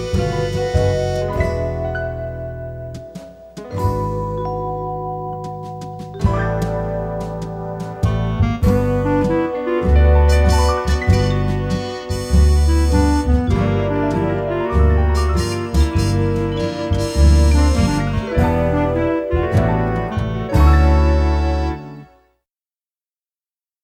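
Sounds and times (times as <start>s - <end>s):
soft clarinet ballad: 0.0s - 4.3s, 6.2s - 22.2s.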